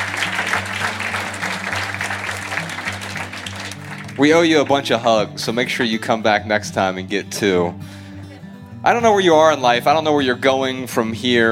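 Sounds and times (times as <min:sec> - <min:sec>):
crowd applauding: 0:00.0 - 0:05.3
speech: 0:04.2 - 0:08.0, 0:08.8 - 0:11.5.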